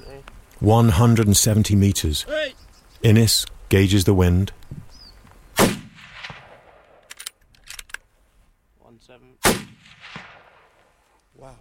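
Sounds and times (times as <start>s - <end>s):
speech: 0.1s - 4.8s
hunting rifle shots: 5.6s - 7.2s, 9.4s - 10.8s.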